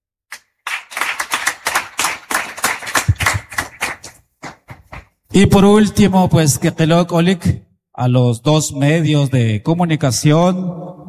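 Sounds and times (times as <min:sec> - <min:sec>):
crowd applauding: 0:00.3 - 0:05.0
speech: 0:05.3 - 0:11.0.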